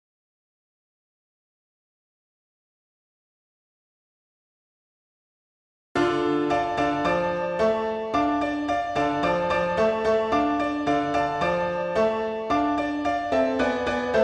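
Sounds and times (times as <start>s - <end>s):
solo piano: 6.0s - 14.2s.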